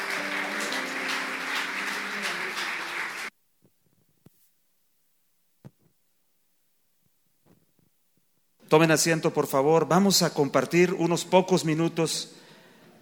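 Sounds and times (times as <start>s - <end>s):
audience applause: 0.0s - 3.3s
speech: 8.7s - 12.4s.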